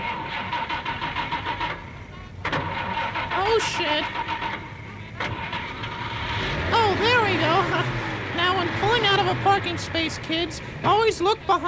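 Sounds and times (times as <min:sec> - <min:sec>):
car engine starting: 0:00.0 - 0:11.6
speech: 0:03.5 - 0:04.2, 0:07.4 - 0:11.6.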